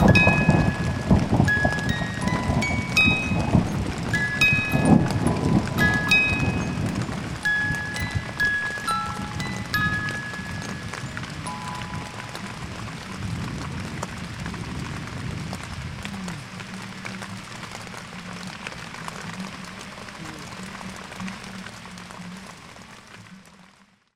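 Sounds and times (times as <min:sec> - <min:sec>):
thunder: 0:00.0 - 0:08.6, 0:09.8 - 0:16.5
water droplets: 0:00.0 - 0:13.0.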